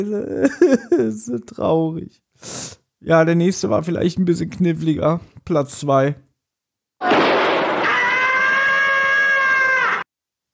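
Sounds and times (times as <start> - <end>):
speech: 0.0 - 6.3, 7.0 - 7.3
cartoon cat scream: 7.0 - 10.1.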